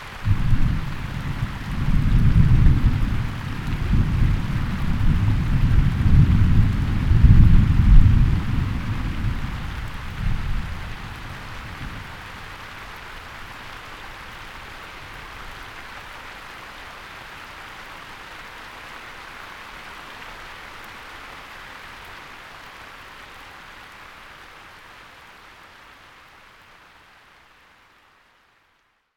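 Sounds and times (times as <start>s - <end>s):
rain shower: 0.0s - 29.1s
thunder: 0.2s - 12.1s.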